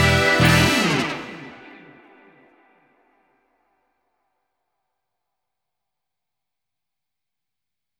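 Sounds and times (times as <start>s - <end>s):
backing track: 0.0s - 2.8s.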